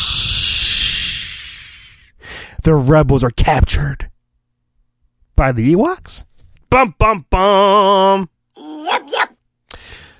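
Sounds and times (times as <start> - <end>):
whoosh of a net trap springing: 0.0 - 2.1
speech: 2.6 - 4.1, 5.4 - 8.4.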